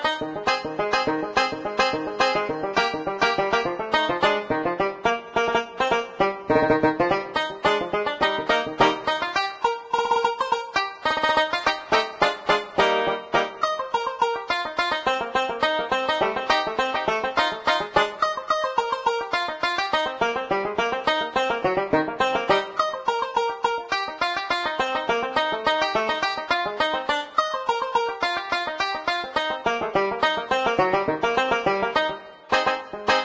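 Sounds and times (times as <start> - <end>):
banjo duet: 0.0 - 33.2.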